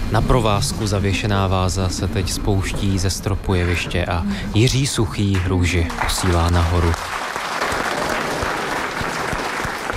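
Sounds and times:
speech: 0.1 - 7.2
audience applause: 5.4 - 9.9.

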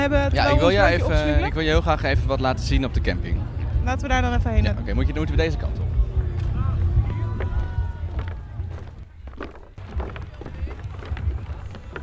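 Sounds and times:
speech: 0.0 - 5.8
crowd voices at festival campsite: 0.0 - 12.0
steady low rumble at festival campsite: 0.0 - 12.0
clatters and bumps: 6.2 - 12.0.

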